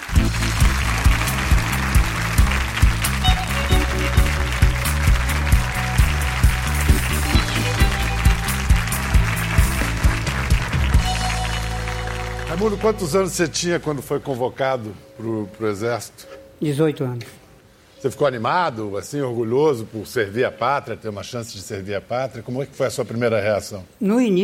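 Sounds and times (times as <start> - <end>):
rhythmic music with a pulsing bass beat: 0.0 - 13.3
studio audience applause: 0.0 - 14.2
speech: 12.6 - 17.4, 18.0 - 24.4.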